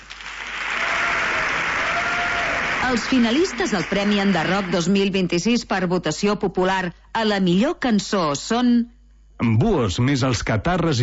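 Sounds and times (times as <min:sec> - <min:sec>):
audience applause at the Premis Enderroc awards ceremony: 0:00.0 - 0:05.1
speech: 0:02.9 - 0:11.0.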